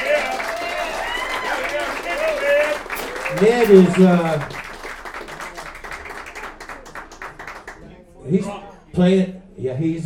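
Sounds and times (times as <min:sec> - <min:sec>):
audience applause for the drummer: 0:00.0 - 0:07.8
speech: 0:03.4 - 0:04.6, 0:08.3 - 0:10.0.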